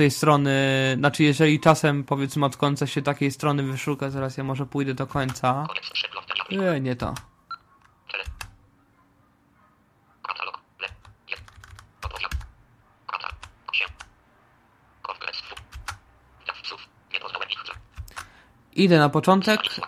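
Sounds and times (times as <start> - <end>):
speech: 0.0 - 7.3, 18.8 - 19.8
small device pipping as it works: 5.1 - 8.6, 10.2 - 14.2, 15.0 - 18.4, 19.4 - 19.8.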